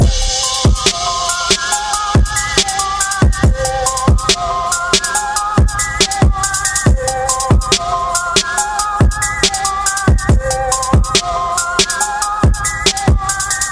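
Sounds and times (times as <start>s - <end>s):
hip hop beat: 0.0s - 13.6s.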